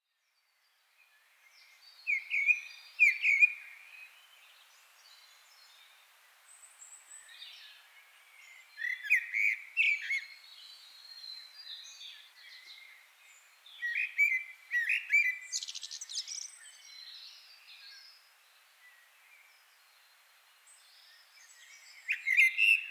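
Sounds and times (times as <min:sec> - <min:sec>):
faint hiss: 0:00.2 - 0:22.8
common blackbird singing: 0:08.4 - 0:13.0, 0:13.8 - 0:18.2, 0:20.9 - 0:22.8.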